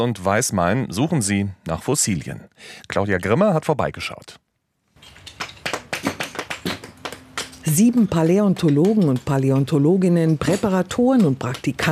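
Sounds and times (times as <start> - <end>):
speech: 0.0 - 4.4, 7.7 - 11.8
hammer splitting small limestone slabs at a quarry fossil dig: 5.0 - 11.8.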